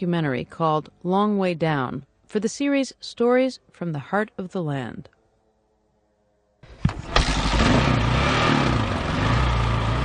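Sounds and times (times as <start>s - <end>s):
speech: 0.0s - 5.2s
motorcycle engine climbing steep muddy logging road in the Sinfarosa Canyon: 6.6s - 10.0s.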